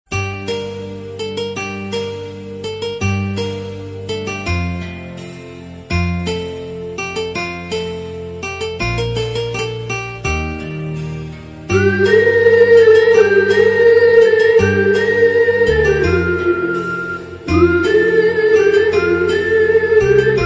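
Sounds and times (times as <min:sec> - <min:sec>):
Telugu background music ringtone: 0:00.1 - 0:20.4.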